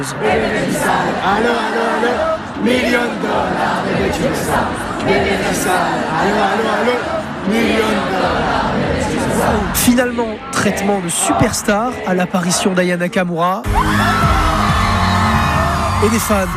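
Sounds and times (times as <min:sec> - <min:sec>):
speech: 0:00.0 - 0:14.4, 0:16.0 - 0:16.5
large concert crowd singing a pop song a cappella: 0:00.0 - 0:16.0
crowd shouts and whoops: 0:13.6 - 0:16.5.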